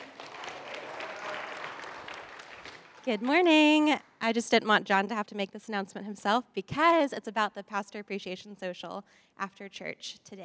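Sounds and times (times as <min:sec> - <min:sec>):
church congregation applause welcoming a speaker during a service: 0:00.0 - 0:03.2
speech: 0:03.0 - 0:10.4.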